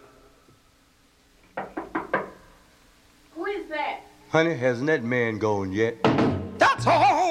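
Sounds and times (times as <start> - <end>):
knocking on a door: 1.6 - 2.4, 6.0 - 6.6
speech: 4.3 - 6.1, 6.8 - 7.1.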